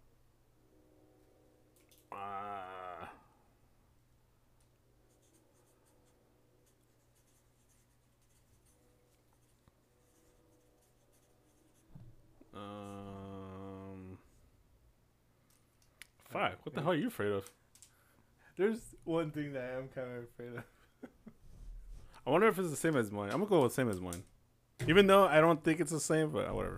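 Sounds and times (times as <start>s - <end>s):
speech: 2.1s - 2.6s, 16.4s - 17.6s, 18.6s - 21.2s, 22.3s - 26.7s
pen scratching on paper writing answers: 5.1s - 11.9s.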